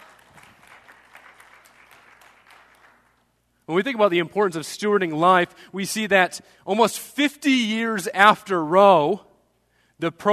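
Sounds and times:
audience applause: 0.0 - 3.1
speech: 3.7 - 9.3, 10.0 - 10.3.

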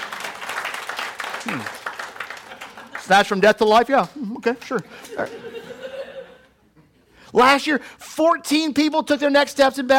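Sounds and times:
modest golf clap: 0.0 - 3.2
speech: 1.4 - 1.8, 3.1 - 5.5, 7.3 - 9.9
laughter: 1.4 - 3.4, 4.2 - 7.1.

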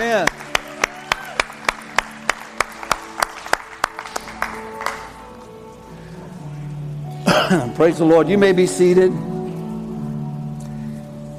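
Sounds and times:
speech: 0.0 - 0.4, 7.8 - 9.3
audience clapping in rhythm: 0.0 - 5.4.

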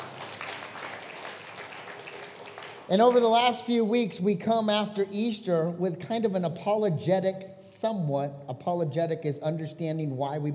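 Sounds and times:
audience clapping: 0.0 - 3.6
speech: 2.9 - 10.5.

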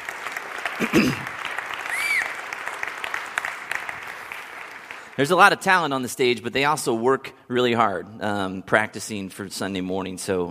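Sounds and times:
audience applause: 0.0 - 5.2
audience whooping: 0.1 - 3.9
speech: 0.8 - 1.3, 5.2 - 10.4.

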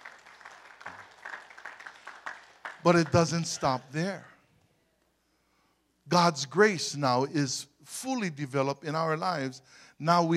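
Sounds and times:
crowd applauding: 0.0 - 3.8
speech: 2.8 - 4.3, 6.1 - 10.3.

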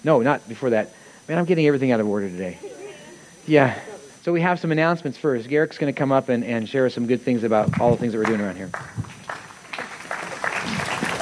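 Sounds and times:
speech: 0.0 - 2.7, 3.4 - 9.0
audience slow clapping in unison: 7.7 - 11.1.

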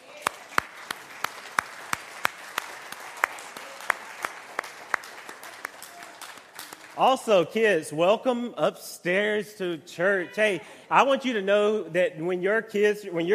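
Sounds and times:
audience applauding: 0.0 - 7.3
speech: 7.0 - 13.3.

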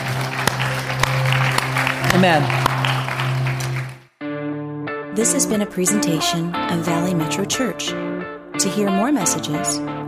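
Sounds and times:
audience applause: 0.0 - 4.1
speech: 2.1 - 2.6, 5.2 - 10.0.

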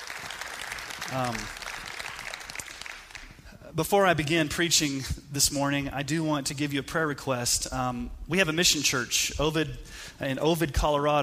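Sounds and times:
round of applause: 0.0 - 3.4
speech: 1.1 - 1.6, 3.7 - 11.2.

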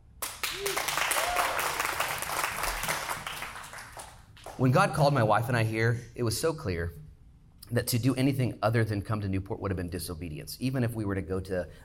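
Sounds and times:
audience applauding: 0.2 - 4.6
speech: 4.6 - 7.0, 7.7 - 11.8.

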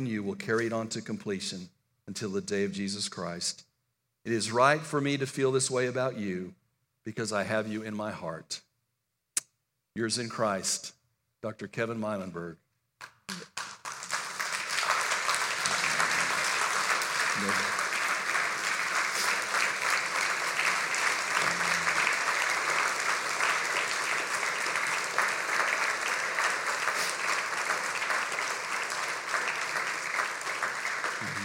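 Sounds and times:
speech: 0.0 - 8.7, 10.0 - 13.4, 17.4 - 17.6
audience clapping: 13.0 - 31.4.

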